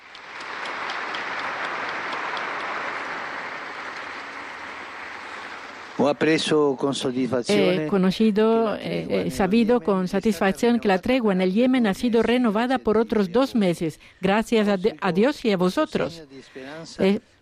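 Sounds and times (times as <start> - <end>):
crowd applause: 0.0 - 6.8
speech: 6.0 - 17.4.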